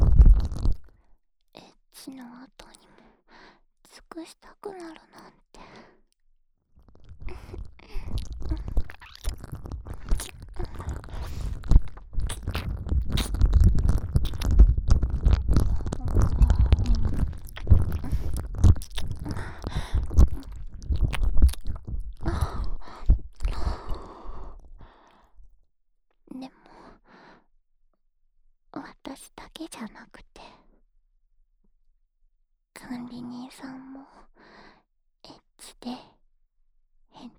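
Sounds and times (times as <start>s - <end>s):
ear licking in the left ear: 7.0s - 24.2s.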